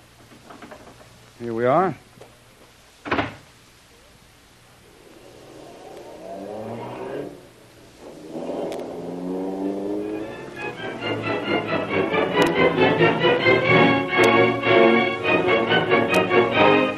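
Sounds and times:
speech: 1.4 - 2.1
car driving off: 4.8 - 14.3
engine revving: 4.8 - 16.8.

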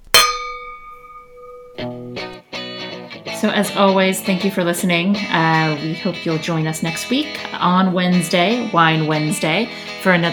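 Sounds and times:
wine glasses clinking in a toast: 0.1 - 1.9
speech: 1.8 - 2.2, 3.4 - 10.3.

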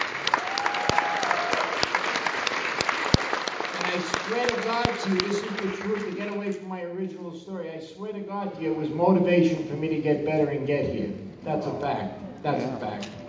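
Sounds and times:
crowd applause: 0.0 - 6.4
speech: 4.0 - 13.2.

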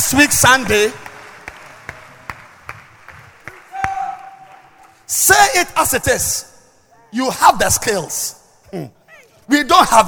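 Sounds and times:
audience clapping: 0.0 - 4.9
speech: 0.1 - 1.0, 5.1 - 6.5, 7.1 - 10.0.

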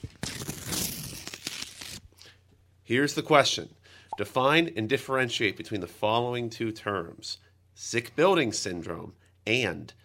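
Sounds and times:
paper envelope being torn open: 0.0 - 2.1
speech: 2.9 - 10.0.

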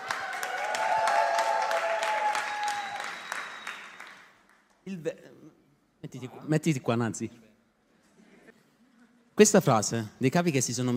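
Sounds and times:
audience applause: 0.0 - 4.6
speech: 4.9 - 5.4, 6.0 - 7.4, 9.4 - 10.9.

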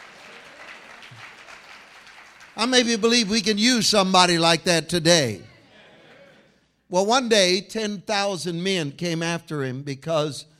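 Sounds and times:
audience clapping: 0.0 - 3.5
speech: 2.6 - 5.5, 6.9 - 10.5.

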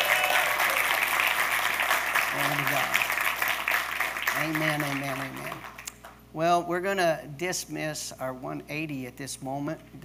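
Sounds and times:
audience clapping: 0.0 - 6.2
speech: 2.4 - 3.0, 4.4 - 5.6, 6.3 - 10.0.

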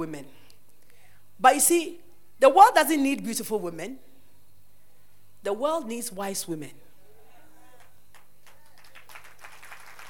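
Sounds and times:
speech: 0.0 - 0.4, 1.4 - 4.1, 5.4 - 6.8
audience clapping: 7.8 - 10.0.

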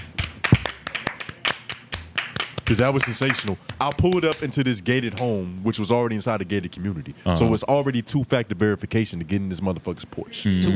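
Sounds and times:
round of applause: 0.0 - 4.4
speech: 2.7 - 10.7.

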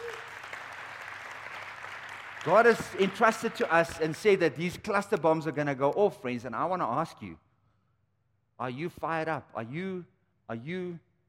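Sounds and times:
audience applause: 0.0 - 4.1
speech: 2.4 - 7.4, 8.6 - 11.1.

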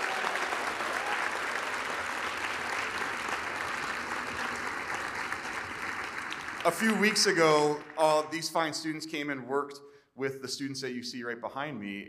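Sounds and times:
audience applause: 0.0 - 8.6
speech: 6.6 - 12.0.

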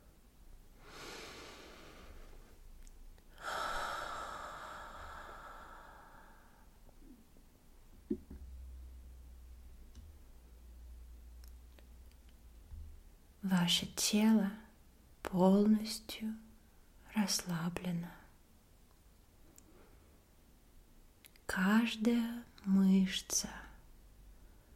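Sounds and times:
faint deep breathing during a guided relaxation exercise: 0.8 - 2.6, 3.3 - 6.8
speech: 13.5 - 14.6, 15.3 - 16.4, 17.2 - 18.2, 21.6 - 23.6.

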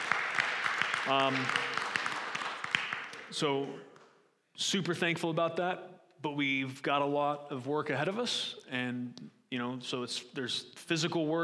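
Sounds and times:
audience clapping: 0.0 - 4.1
speech: 1.0 - 1.7, 3.3 - 3.9, 4.6 - 11.4.

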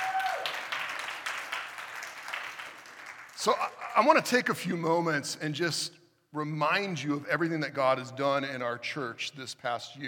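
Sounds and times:
audience clapping: 0.0 - 4.3
speech: 3.4 - 10.0.

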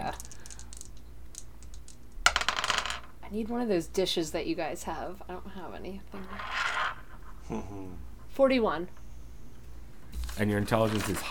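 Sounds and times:
dice rolling on hard surface for an intelligence check: 0.0 - 3.2, 6.2 - 7.2
speech: 3.3 - 6.6, 7.5 - 9.0, 10.4 - 11.2.

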